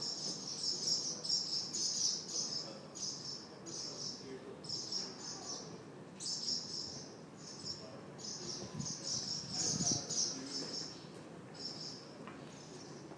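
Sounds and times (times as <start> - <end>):
house martins calling in a stables courtyard: 0.0 - 13.0.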